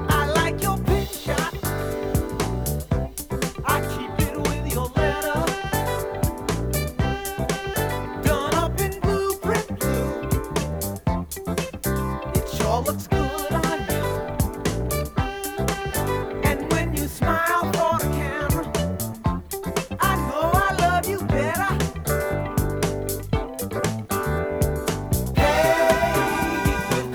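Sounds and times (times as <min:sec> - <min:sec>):
Ion Audio TTUSB05 turntable playing: 0:00.0 - 0:27.1.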